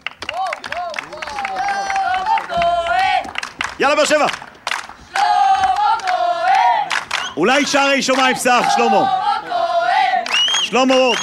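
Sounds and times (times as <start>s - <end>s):
audience clapping and cheering: 0.0s - 11.2s
voices calling out: 0.3s - 11.2s
speech: 3.8s - 4.4s, 7.4s - 9.2s, 10.7s - 11.2s.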